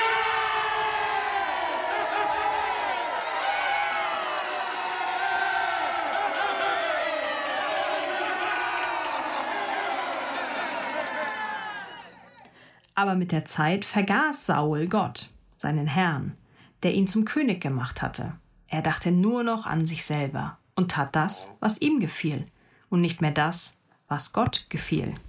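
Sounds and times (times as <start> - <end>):
large crowd cheering and shouting: 0.0 - 12.5
speech: 13.0 - 25.2.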